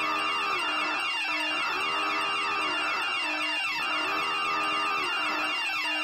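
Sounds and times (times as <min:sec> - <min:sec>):
fire alarm horn whooping: 0:00.0 - 0:06.0.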